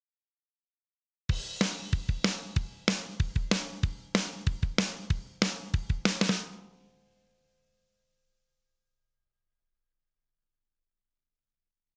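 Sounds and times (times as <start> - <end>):
drum: 1.3 - 6.7.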